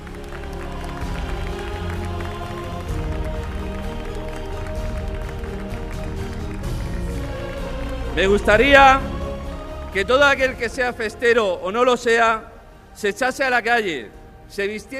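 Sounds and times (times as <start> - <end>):
crowd applause: 0.0 - 10.8
speech: 8.2 - 9.1, 10.0 - 14.9.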